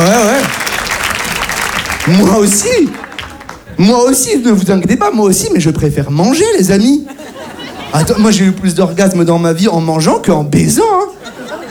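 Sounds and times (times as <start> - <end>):
audience applause: 0.0 - 3.9
speech: 2.1 - 3.0, 3.8 - 7.3, 7.9 - 11.4.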